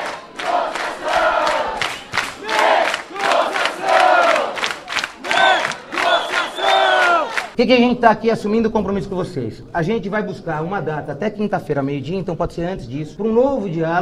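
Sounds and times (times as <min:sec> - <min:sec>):
protesting students chanting in unison in chamber: 0:00.0 - 0:07.6
speech: 0:07.6 - 0:14.0.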